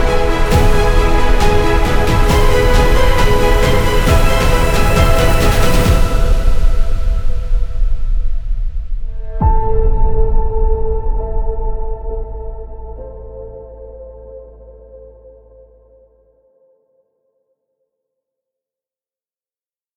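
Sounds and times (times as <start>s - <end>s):
cinematic trailer music: 0.0s - 15.6s.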